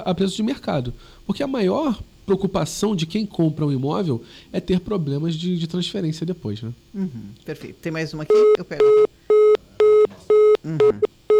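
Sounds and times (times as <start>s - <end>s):
speech: 0.0s - 9.0s, 10.6s - 11.1s
phone busy tone after a dropped phone call: 8.3s - 11.3s.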